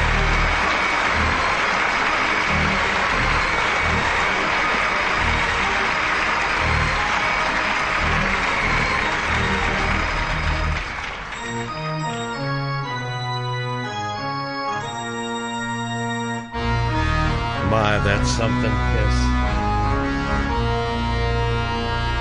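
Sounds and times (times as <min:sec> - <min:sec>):
audience applause welcoming a guest onto a stage show: 0:00.0 - 0:12.2, 0:17.6 - 0:19.2
sustained tonal organ music: 0:00.0 - 0:22.1
speech: 0:18.2 - 0:19.3.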